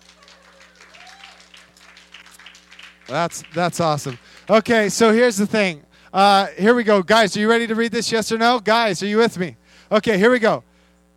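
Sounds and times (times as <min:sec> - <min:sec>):
audience clapping: 0:00.0 - 0:05.1
low steady hum: 0:00.0 - 0:11.1
speech: 0:03.1 - 0:10.7.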